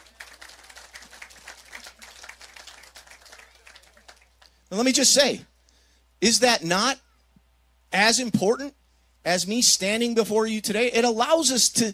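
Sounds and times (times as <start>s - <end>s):
crowd applauding: 0.0s - 4.6s
speech: 4.7s - 5.5s, 6.2s - 7.0s, 7.9s - 11.9s.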